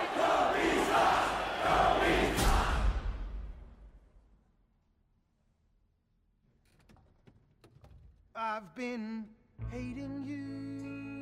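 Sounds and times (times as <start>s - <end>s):
crowd booing: 0.0s - 3.2s
speech: 8.5s - 10.9s.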